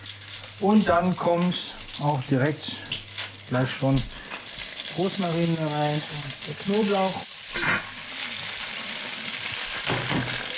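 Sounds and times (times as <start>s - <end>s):
potatoes sizzling as they fry in pan: 0.0s - 10.5s
speech: 0.6s - 4.3s, 5.0s - 7.8s.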